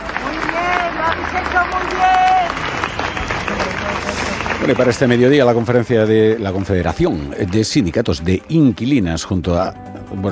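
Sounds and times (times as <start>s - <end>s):
voices calling out: 0.0s - 6.8s
large crowd applauding outdoors at a memorial march: 0.0s - 8.7s
speech: 4.7s - 10.3s.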